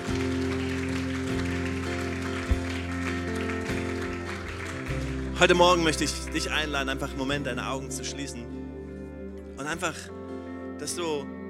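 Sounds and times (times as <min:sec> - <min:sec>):
audience applause: 0:00.0 - 0:07.1
low keyboard chords: 0:00.0 - 0:11.4
speech: 0:05.4 - 0:08.6, 0:09.6 - 0:10.2, 0:10.8 - 0:11.4.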